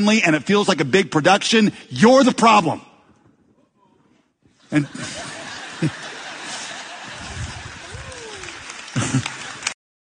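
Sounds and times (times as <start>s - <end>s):
speech: 0.0s - 2.9s, 4.7s - 6.1s, 9.0s - 9.4s
laughter: 4.6s - 9.8s
audience clapping during a church sermon: 6.8s - 9.8s.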